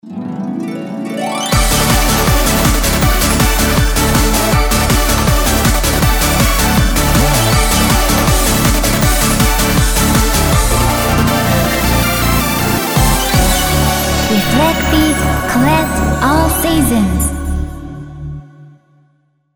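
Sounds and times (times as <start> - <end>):
opening background music: 0.0 - 18.8.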